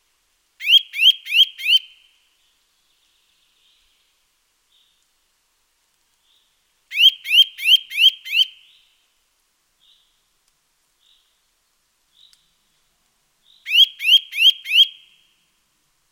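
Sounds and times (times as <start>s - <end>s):
Eurasian nuthatch Sitta europaea calling with loud rising whistles: 0.6s - 1.9s, 6.9s - 8.5s, 13.7s - 15.0s.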